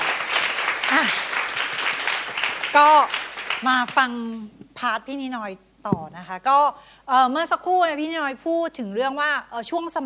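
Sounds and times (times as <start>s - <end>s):
people clapping: 0.0s - 4.1s
speech: 1.0s - 1.3s, 2.8s - 10.0s.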